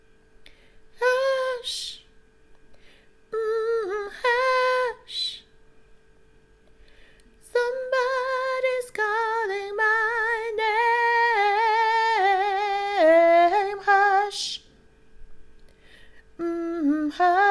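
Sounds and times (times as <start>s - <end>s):
soprano singing: 1.0s - 2.1s, 3.3s - 5.5s, 7.4s - 14.7s, 16.4s - 17.5s.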